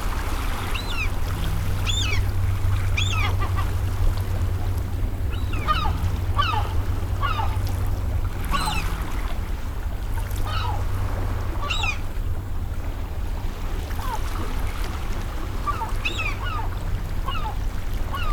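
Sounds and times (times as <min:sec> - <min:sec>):
engine hum from passing vessels: 0:00.0 - 0:18.3
gull cries: 0:00.4 - 0:09.2, 0:15.3 - 0:18.3.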